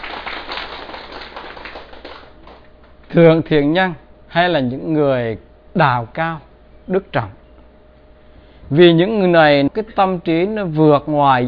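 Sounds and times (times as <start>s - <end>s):
audience applause at a talk: 0.0s - 2.7s
speech: 3.1s - 7.4s, 8.7s - 11.4s.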